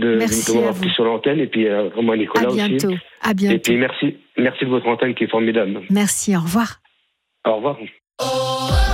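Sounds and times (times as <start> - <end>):
speech: 0.0 - 6.8, 7.4 - 8.8
radio station news chime: 0.2 - 0.8, 2.4 - 3.8.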